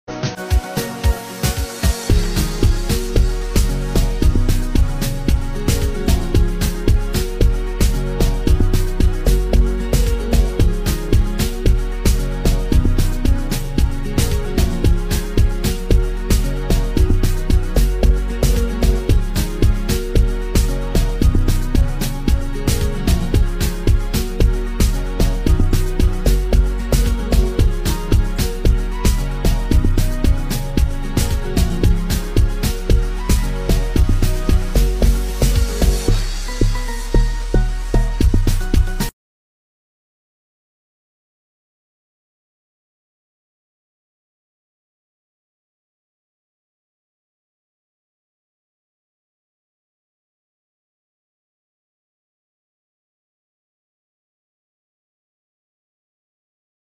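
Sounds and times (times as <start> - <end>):
instrumental music: 0.1 - 39.1.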